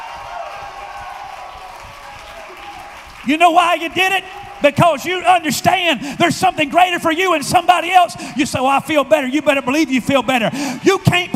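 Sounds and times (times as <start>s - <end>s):
audience shouting woo: 0.0s - 3.0s
speech: 3.2s - 11.3s.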